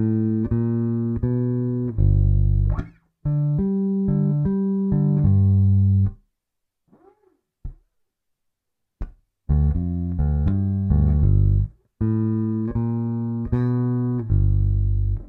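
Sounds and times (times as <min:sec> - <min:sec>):
G7 sixteenth-note swing bass groove: 0:00.0 - 0:06.2, 0:09.5 - 0:15.2.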